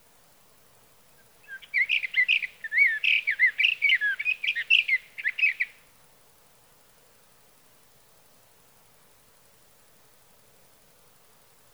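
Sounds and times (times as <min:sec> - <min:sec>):
sage thrasher song: 0:01.2 - 0:05.8.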